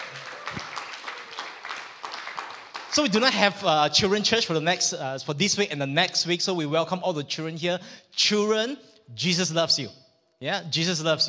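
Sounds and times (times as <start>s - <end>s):
faint applause from a church audience for the children: 0.0s - 3.2s
speech: 2.9s - 11.2s.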